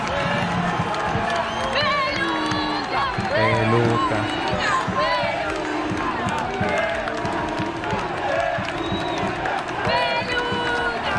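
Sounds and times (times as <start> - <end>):
large crowd cheering and shouting in a sustained ovation: 0.0 - 11.1
whistles: 1.1 - 4.4, 8.6 - 9.5.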